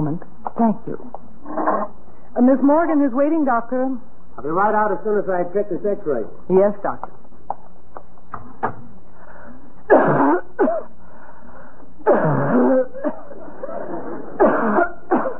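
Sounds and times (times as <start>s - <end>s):
speech: 0.1s - 1.8s, 2.4s - 7.2s
woman coughing: 9.9s - 11.0s, 12.0s - 15.3s.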